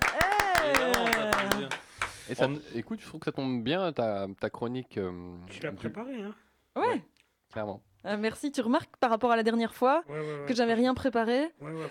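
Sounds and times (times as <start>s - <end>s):
audience clapping: 0.0s - 2.2s
speech: 2.3s - 11.8s.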